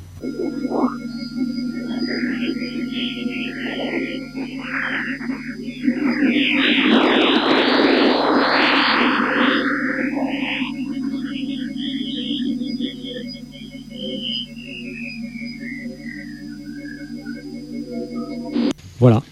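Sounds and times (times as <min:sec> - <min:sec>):
warbling whistling tones of sonified Jupiter radio emissions: 0:00.0 - 0:18.7
eerie electronic hum of sonified Jupiter radio emissions: 0:00.0 - 0:19.2.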